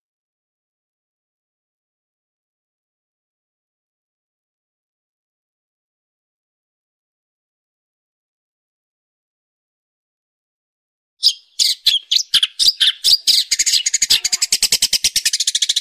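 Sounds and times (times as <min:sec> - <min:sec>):
long-tailed shrike chattering song: 0:11.2 - 0:15.8.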